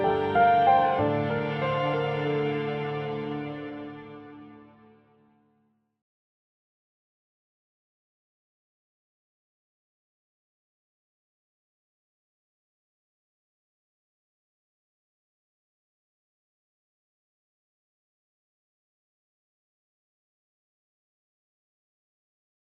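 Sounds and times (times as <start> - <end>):
soundtrack music: 0.0 - 5.0.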